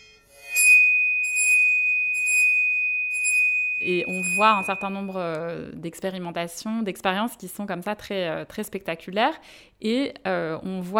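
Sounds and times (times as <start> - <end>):
bow vibrating a metal Chladni plate: 0.4 - 5.3
speech: 3.8 - 10.9.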